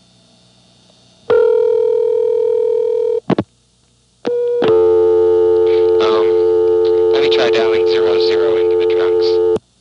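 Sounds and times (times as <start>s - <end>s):
telephone tones from dialing into trunk lines of a 728 exchange office: 1.3s - 3.2s, 4.3s - 9.6s.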